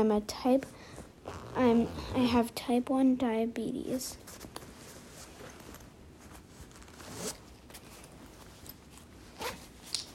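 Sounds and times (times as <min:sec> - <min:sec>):
speech: 0:00.0 - 0:04.5
zipper on an insulin bag being opened: 0:01.2 - 0:02.3, 0:06.6 - 0:07.5, 0:09.3 - 0:09.7
insulin bag rustling: 0:04.4 - 0:10.1.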